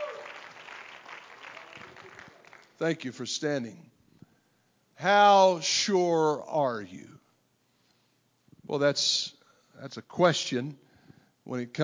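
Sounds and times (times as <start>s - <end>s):
audience clapping hands: 0.0s - 2.8s
speech: 2.8s - 3.9s, 5.0s - 7.2s, 8.7s - 10.8s, 11.4s - 11.8s.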